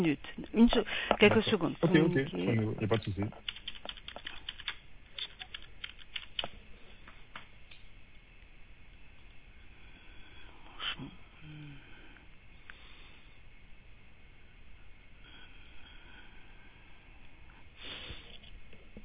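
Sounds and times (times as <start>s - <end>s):
speech: 0.0s - 3.6s
typing on a computer keyboard: 3.0s - 6.6s.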